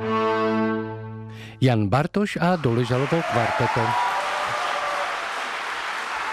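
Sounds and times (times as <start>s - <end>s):
speech: 1.6s - 4.1s
soft concert audience applause after a piano and string quartet performance: 2.5s - 6.3s.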